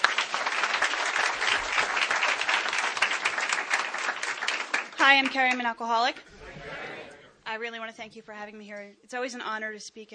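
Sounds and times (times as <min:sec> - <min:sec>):
audience clapping: 0:00.0 - 0:05.8
speech: 0:05.0 - 0:06.8, 0:07.5 - 0:10.1.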